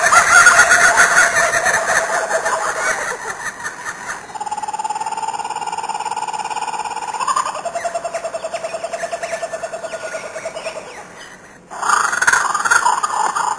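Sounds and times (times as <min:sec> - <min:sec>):
kookaburra laugh: 0:00.0 - 0:13.5.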